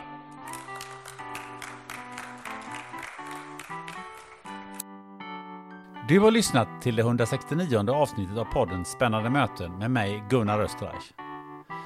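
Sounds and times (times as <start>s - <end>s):
audience applause: 0.4s - 4.7s
speech: 6.1s - 11.2s.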